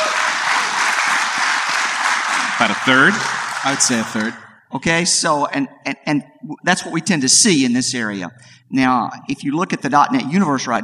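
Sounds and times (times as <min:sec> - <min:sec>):
audience clapping: 0:00.0 - 0:04.5
speech: 0:02.6 - 0:10.8.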